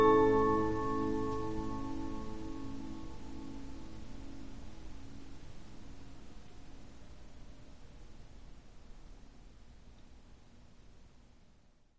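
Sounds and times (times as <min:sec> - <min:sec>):
Polyphon disc music box playing: 0:00.0 - 0:02.8.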